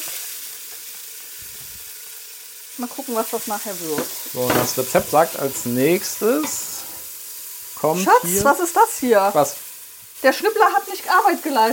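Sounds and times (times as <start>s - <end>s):
onion and bell pepper frying in a pan: 0.0s - 11.7s
speech: 2.8s - 6.9s, 7.8s - 9.6s, 10.2s - 11.7s
soft stirring thumps: 4.0s - 7.0s.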